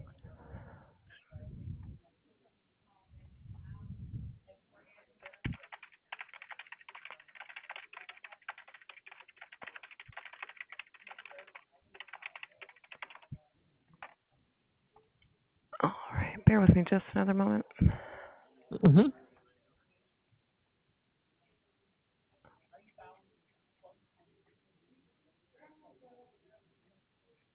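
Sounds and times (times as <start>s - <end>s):
typing on a keyboard: 5.2s - 13.4s, 14.0s - 14.2s
speech: 16.5s - 18.0s, 18.8s - 19.2s.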